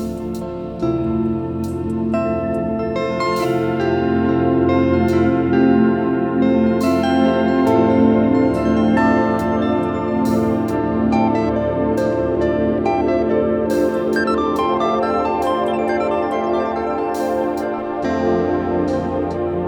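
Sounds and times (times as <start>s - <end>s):
guitar playing: 0.0s - 19.6s.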